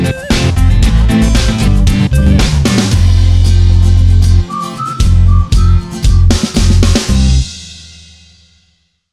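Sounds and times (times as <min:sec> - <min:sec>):
commercial music: 0:00.0 - 0:07.8.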